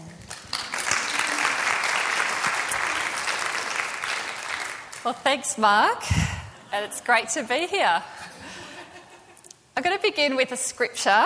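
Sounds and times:
audience applauding: 0.0s - 5.0s
speech: 5.0s - 8.3s, 9.8s - 11.2s.

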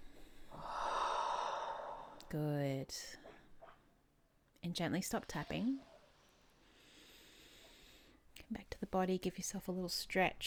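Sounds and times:
deep inhale through the nose during a guided tapping session: 0.4s - 2.2s, 6.2s - 8.2s
speech: 2.3s - 3.2s, 4.6s - 5.9s, 8.5s - 10.4s.

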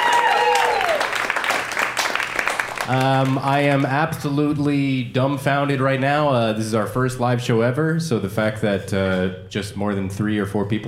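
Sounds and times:
audience applause at a live show: 0.0s - 4.0s
speech: 2.9s - 10.8s.

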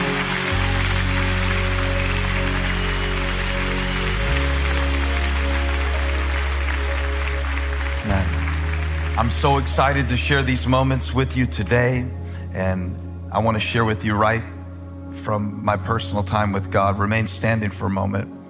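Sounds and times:
audience clapping hands: 0.0s - 11.1s
speech: 9.2s - 14.6s, 15.2s - 18.4s.

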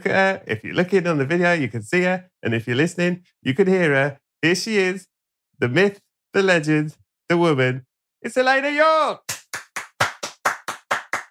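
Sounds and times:
speech: 0.0s - 9.4s
person clapping: 9.3s - 11.2s.

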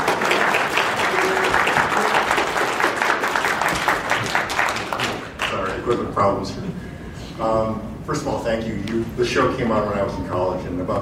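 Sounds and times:
audience applause: 0.0s - 5.8s
speech: 5.9s - 10.9s.

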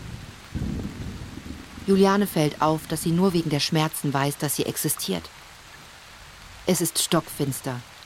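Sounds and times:
thunder: 0.0s - 2.0s
heavy cold rain: 0.0s - 8.0s
speech: 1.9s - 5.4s, 6.7s - 7.9s.

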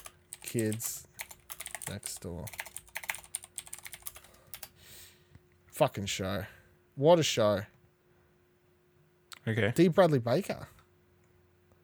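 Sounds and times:
typing on a computer keyboard: 0.0s - 4.7s
speech: 0.5s - 1.0s, 1.9s - 2.6s, 5.8s - 7.8s, 9.5s - 10.8s.

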